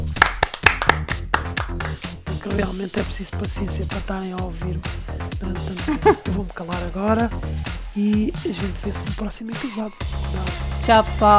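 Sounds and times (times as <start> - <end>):
round of hand clapping: 0.0 - 3.1
speech: 2.5 - 11.3
laughter: 5.8 - 6.4.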